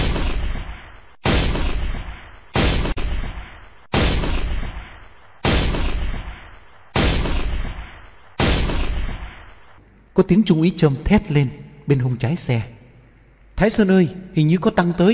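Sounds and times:
heavy machine gun fire: 0.0s - 9.6s
speech: 10.2s - 12.8s, 13.6s - 15.1s.

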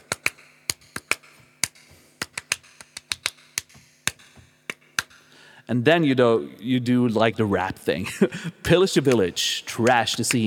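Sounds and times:
hands clapping a rhythm: 0.0s - 5.3s, 9.0s - 10.4s
speech: 5.7s - 10.4s.

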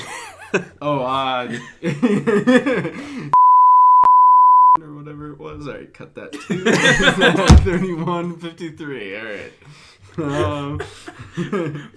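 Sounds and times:
speech: 0.5s - 3.4s, 5.5s - 11.9s
laughter: 1.4s - 3.3s, 6.4s - 8.0s, 10.2s - 11.9s
high-pitched censor bleep: 3.4s - 4.8s.

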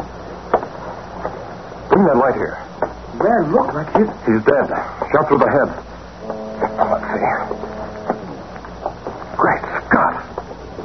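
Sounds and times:
speech: 1.9s - 7.8s
approaching boat: 6.1s - 9.4s.

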